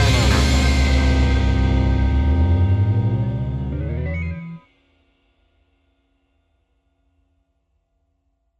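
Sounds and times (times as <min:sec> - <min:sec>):
2000s emo rock music: 0:00.0 - 0:04.7.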